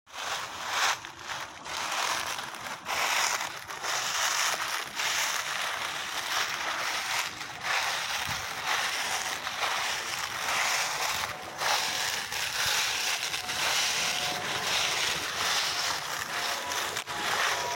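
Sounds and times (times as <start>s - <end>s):
autumn leaves rustling: 0.1s - 17.7s.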